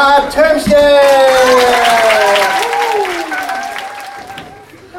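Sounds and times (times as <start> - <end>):
speech: 0.2 - 1.7
strong applause from audience: 1.0 - 4.9.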